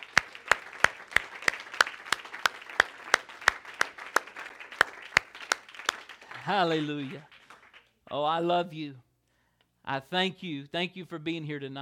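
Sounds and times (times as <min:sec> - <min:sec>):
audience clapping hands in a steady rhythm: 0:00.0 - 0:08.6
speech: 0:06.5 - 0:07.3, 0:08.1 - 0:09.1, 0:09.9 - 0:11.7.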